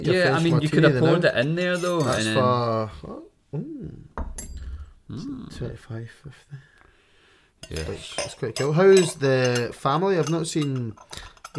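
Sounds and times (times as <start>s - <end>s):
speech: 0.0s - 4.5s, 5.1s - 6.7s, 7.6s - 11.5s
rummaging through a cutlery drawer: 7.6s - 11.5s.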